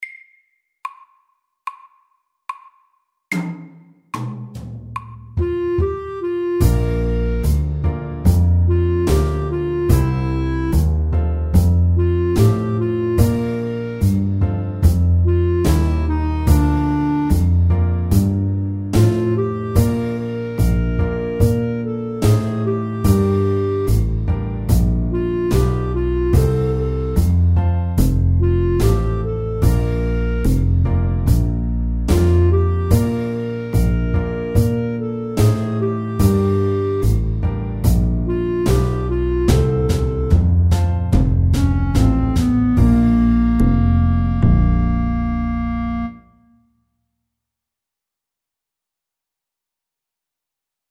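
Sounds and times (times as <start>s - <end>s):
slow blues music: 5.4s - 46.1s.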